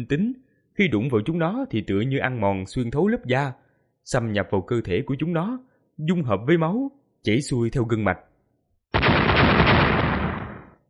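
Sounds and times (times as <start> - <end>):
speech: 0.0 - 8.3
series of explosions: 9.0 - 10.8.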